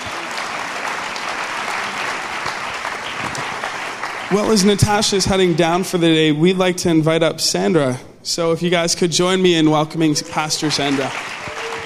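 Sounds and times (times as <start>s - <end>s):
round of applause: 0.0s - 4.9s, 10.3s - 11.8s
speech: 4.3s - 11.3s.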